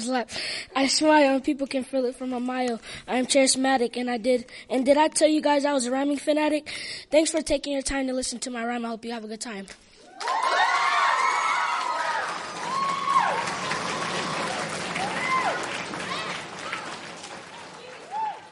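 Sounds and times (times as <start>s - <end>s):
speech: 0.0s - 10.6s
children clapping: 10.1s - 18.5s
crowd of children cheering: 10.1s - 18.5s.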